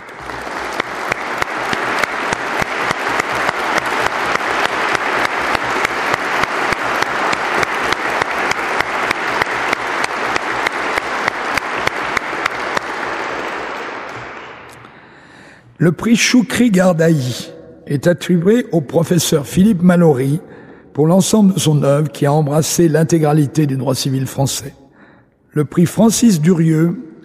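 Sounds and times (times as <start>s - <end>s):
audience applause: 0.0s - 15.3s
speech: 15.8s - 24.8s, 25.5s - 27.1s.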